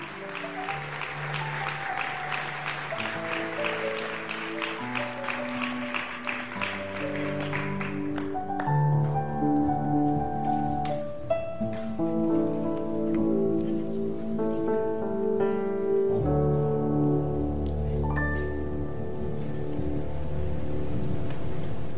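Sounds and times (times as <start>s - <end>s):
audience applause: 0.0s - 9.2s
sustained keyboard chords: 0.0s - 21.9s.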